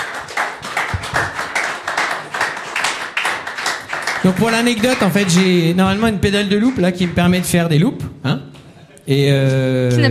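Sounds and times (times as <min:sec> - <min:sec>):
audience applauding loudly: 0:00.0 - 0:07.8
speech: 0:04.2 - 0:08.4, 0:09.1 - 0:10.1.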